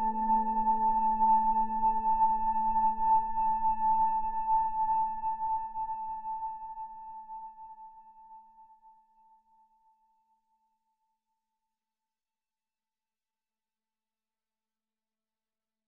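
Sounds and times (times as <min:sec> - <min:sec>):
sad calm ambient music: 0:00.0 - 0:10.3.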